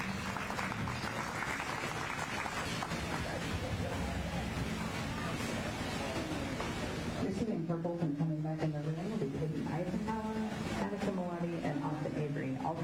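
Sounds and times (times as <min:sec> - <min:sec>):
audience applause: 0:00.0 - 0:04.4
murmur of voices: 0:00.0 - 0:12.8
speech: 0:07.7 - 0:08.9.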